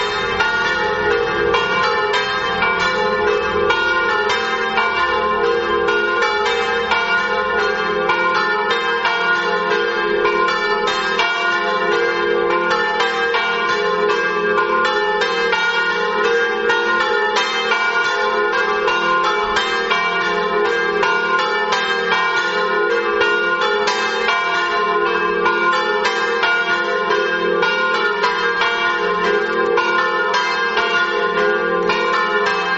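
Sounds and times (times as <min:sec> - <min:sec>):
bells ringing in Mereto: 0:00.0 - 0:32.7.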